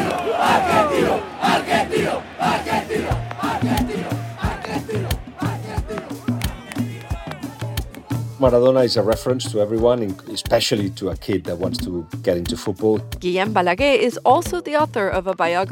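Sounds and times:
huge stadium crowd roaring and cheering wildly: 0.0s - 9.1s
speech: 8.4s - 15.7s.

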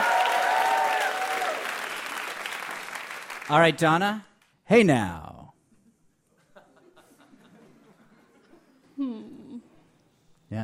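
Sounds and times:
audience applause: 0.0s - 3.7s
speech: 3.5s - 5.3s
laughter: 6.3s - 8.9s.

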